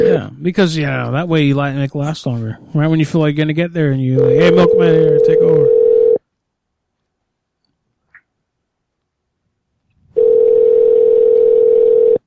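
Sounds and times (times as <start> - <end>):
speech: 0.2 - 5.8
telephone call ringing tone: 4.2 - 6.2, 10.2 - 12.2.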